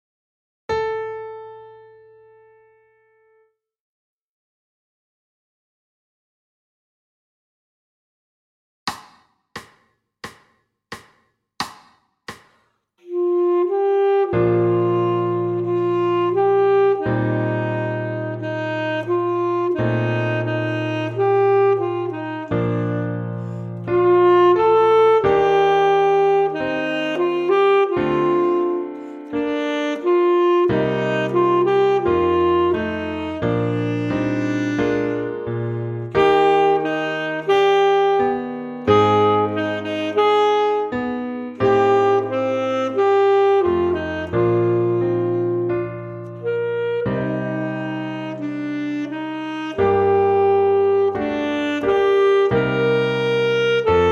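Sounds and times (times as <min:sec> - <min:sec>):
saxophone: 0:13.0 - 0:54.1.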